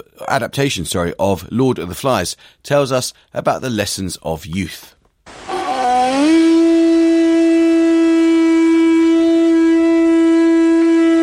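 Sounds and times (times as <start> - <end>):
speech: 0.2 - 5.5
conch shell blown in a Lord of the Flies adaptation: 5.3 - 11.2.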